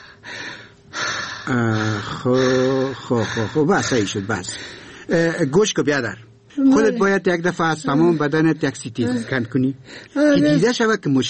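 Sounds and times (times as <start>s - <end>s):
deep breathing during a doctor's examination: 0.0s - 5.1s
speech: 1.5s - 11.2s.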